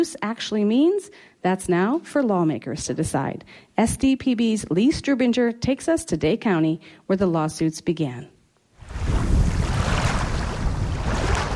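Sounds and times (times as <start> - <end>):
speech: 0.0 - 8.4
slight breeze rippling water at the southern end of Long Lake: 8.8 - 11.5.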